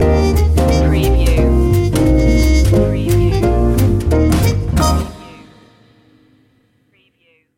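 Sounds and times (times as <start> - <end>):
jazzy music stinger: 0.0 - 5.6.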